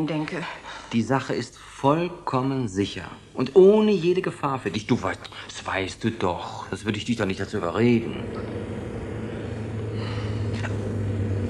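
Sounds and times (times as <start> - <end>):
speech: 0.0 - 8.8
car pulling up with a low engine rumble: 7.0 - 11.4.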